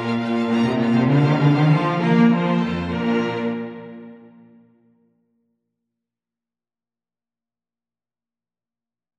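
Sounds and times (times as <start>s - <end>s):
instrumental music: 0.0s - 4.9s.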